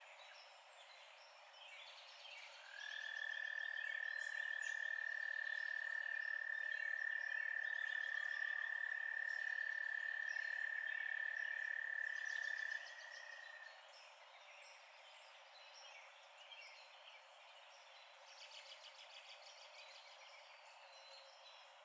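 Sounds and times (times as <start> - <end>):
night frog chorus holding a steady high tone: 2.5 - 13.8.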